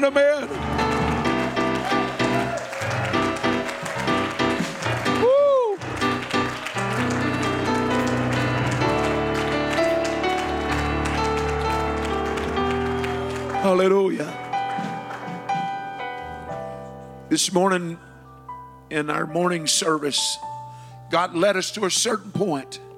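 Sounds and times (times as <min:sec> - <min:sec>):
speech: 0:00.0 - 0:00.8, 0:13.6 - 0:14.4, 0:17.3 - 0:18.1, 0:18.9 - 0:20.5, 0:21.1 - 0:22.9
audience applauding: 0:00.0 - 0:16.4.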